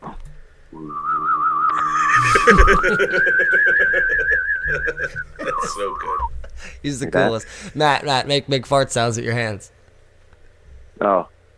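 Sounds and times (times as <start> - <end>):
hummed whistle imitating a landing UFO: 0.7 - 6.4
laughter: 1.7 - 8.0
speech: 2.4 - 9.8, 11.0 - 11.3.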